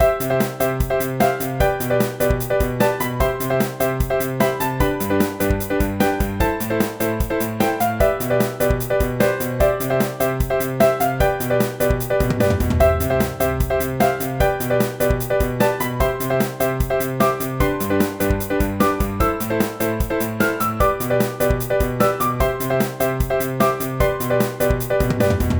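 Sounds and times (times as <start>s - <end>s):
piano: 0.0s - 25.5s.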